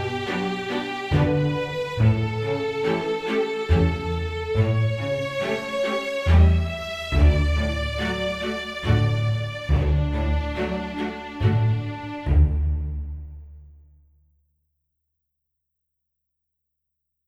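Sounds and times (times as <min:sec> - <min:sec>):
instrumental waltz: 0:00.0 - 0:12.9.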